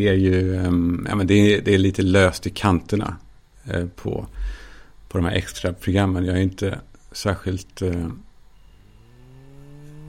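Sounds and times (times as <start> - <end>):
speech: 0.0 - 8.3
blood pressure monitor motor humming and whirring: 8.5 - 10.0.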